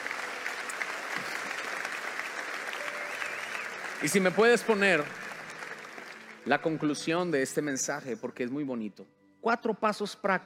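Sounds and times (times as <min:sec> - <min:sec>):
audience applauding: 0:00.0 - 0:07.8
speech: 0:04.0 - 0:05.2, 0:06.4 - 0:10.4.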